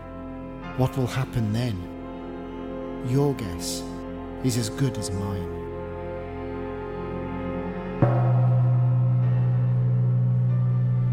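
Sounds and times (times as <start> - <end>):
speech: 0.8 - 1.9, 3.0 - 5.7
gong strike: 8.0 - 11.1.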